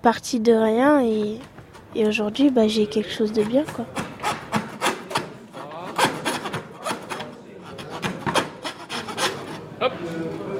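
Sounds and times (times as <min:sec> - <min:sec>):
speech: 0:00.0 - 0:04.1
hand saw cutting wood: 0:03.4 - 0:09.6.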